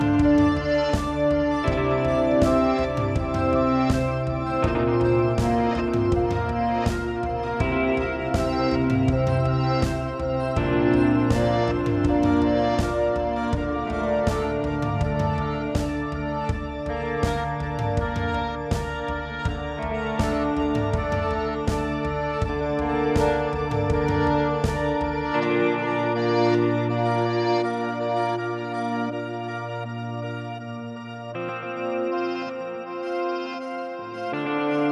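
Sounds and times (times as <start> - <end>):
ambient guitar effect from a multi-effects pedal: 0.0 - 34.9.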